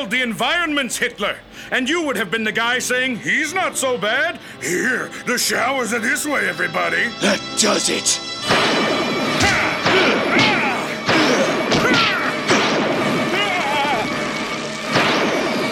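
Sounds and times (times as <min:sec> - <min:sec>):
speech: 0:00.0 - 0:08.7
bullet impact sound effects striking a shape-shifting alien in an audio drama: 0:08.5 - 0:14.0, 0:14.8 - 0:15.6.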